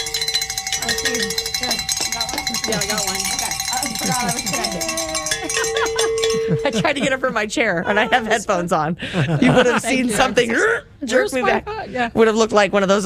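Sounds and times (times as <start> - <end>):
bells ringing: 0.0 - 8.2
laughter: 1.6 - 10.7
speech: 2.5 - 13.0.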